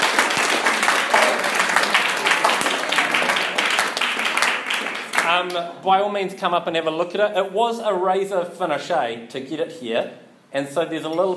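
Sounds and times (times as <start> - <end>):
crowd applause: 0.0 - 5.3
speech: 5.4 - 11.3.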